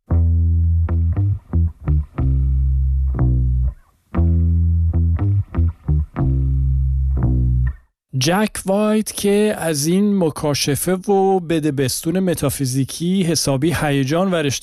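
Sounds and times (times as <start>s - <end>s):
deep bass-like electric guitar riff: 0.1s - 7.8s
speech: 8.2s - 14.6s.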